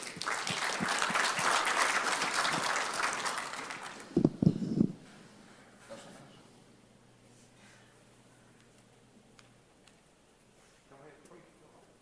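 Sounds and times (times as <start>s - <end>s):
audience applause: 0.0s - 4.2s.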